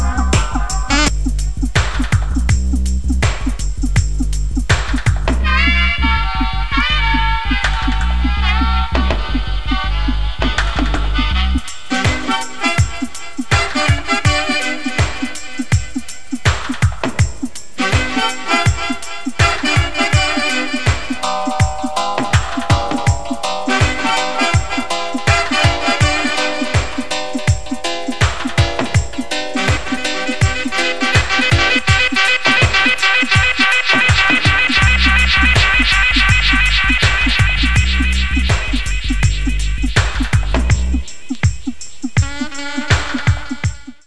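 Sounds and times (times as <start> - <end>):
horns in digistep music: 0.0 - 44.0.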